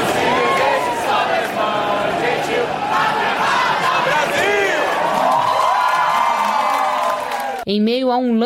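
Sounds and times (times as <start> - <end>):
stadium crowd chanting and singing: 0.0 - 5.7
stadium crowd roaring and cheering: 0.0 - 7.7
speech: 7.7 - 8.4.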